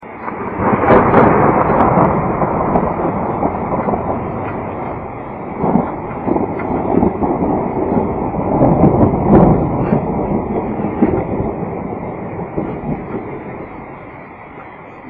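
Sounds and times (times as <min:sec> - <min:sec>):
thunder: 0:00.0 - 0:15.0.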